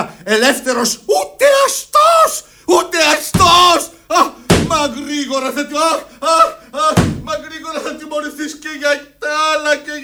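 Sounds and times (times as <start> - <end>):
agitated raised voices: 0.0 - 10.0
speech: 0.2 - 3.9
smacking blows landing on someone in a radio play: 2.5 - 8.2.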